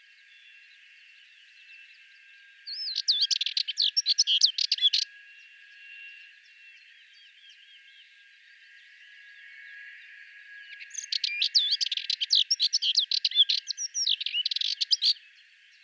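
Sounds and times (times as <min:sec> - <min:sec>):
Sardinian warbler song: 0:02.7 - 0:05.0, 0:10.9 - 0:15.2.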